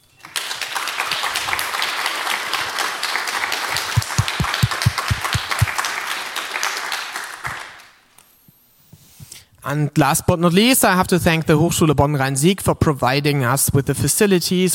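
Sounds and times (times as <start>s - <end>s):
audience applause: 0.2s - 8.0s
speech: 9.7s - 14.7s.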